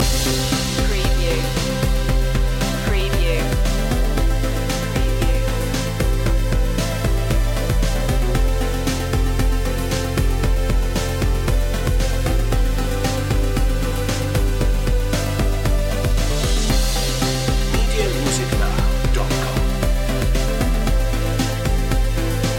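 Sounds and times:
futuristic technology music loop: 0:00.0 - 0:22.5.

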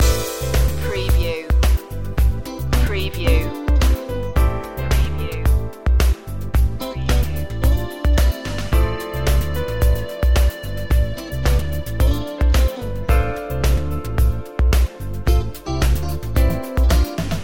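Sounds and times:
smooth chill music loop: 0:00.0 - 0:17.4.

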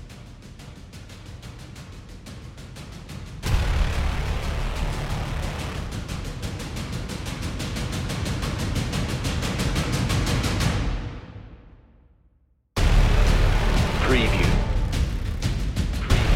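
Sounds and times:
drums: 0:00.0 - 0:11.8, 0:12.8 - 0:16.3
hybrid trailer blares: 0:03.4 - 0:09.0, 0:12.8 - 0:16.3.

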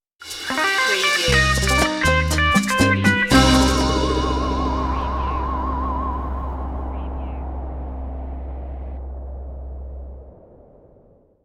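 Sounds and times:
bolero music stinger: 0:00.2 - 0:09.3.

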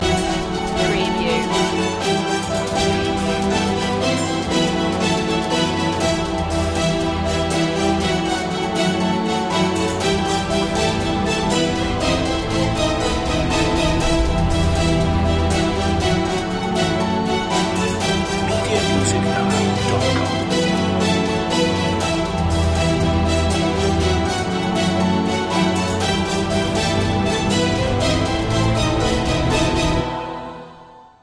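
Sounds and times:
action movie trailer music: 0:00.0 - 0:30.8.

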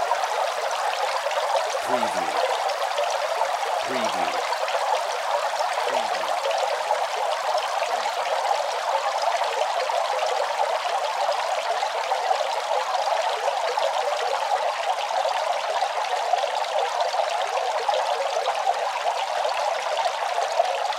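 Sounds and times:
small fountain running: 0:00.0 - 0:20.9.

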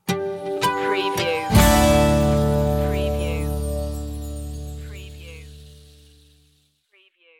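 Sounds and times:
music sting: 0:00.2 - 0:06.4.

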